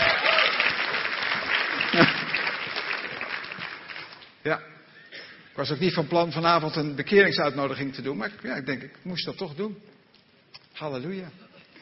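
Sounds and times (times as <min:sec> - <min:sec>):
faint cheer: 0:00.0 - 0:00.9
crowd clapping: 0:00.0 - 0:04.4
speech: 0:01.9 - 0:02.1, 0:04.4 - 0:04.7, 0:05.6 - 0:09.9, 0:10.8 - 0:11.4.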